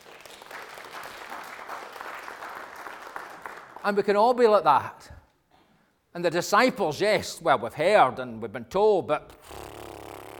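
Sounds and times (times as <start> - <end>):
round of applause: 0.0 - 3.9
speech: 3.8 - 5.2, 6.1 - 9.4.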